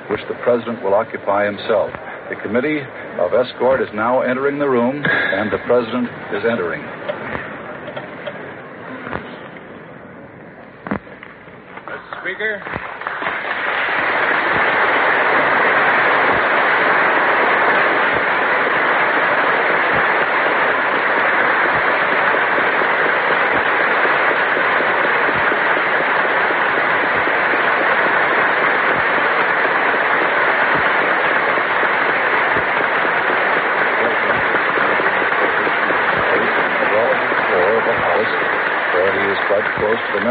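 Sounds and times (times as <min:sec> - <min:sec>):
speech: 0:00.1 - 0:07.0, 0:12.4 - 0:13.0
applause in a large chamber: 0:12.1 - 0:40.2.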